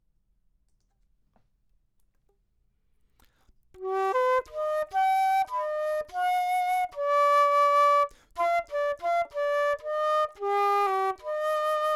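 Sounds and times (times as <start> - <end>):
flute: 3.8 - 11.9.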